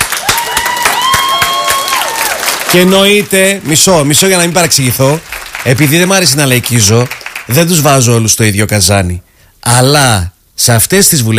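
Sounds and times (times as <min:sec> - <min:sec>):
sharp claps: 0:00.0 - 0:02.9, 0:05.1 - 0:07.7
speech: 0:02.7 - 0:11.3.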